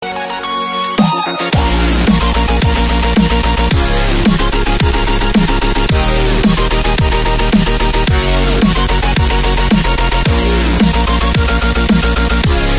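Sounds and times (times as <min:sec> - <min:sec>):
high score ringtone: 0:00.0 - 0:12.7.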